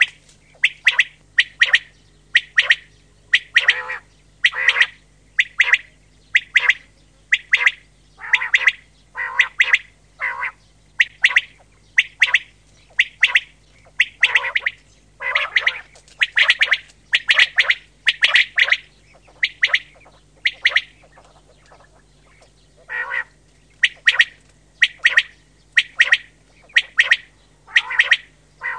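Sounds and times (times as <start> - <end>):
common quail giving short sharp notes: 0.0 - 28.7.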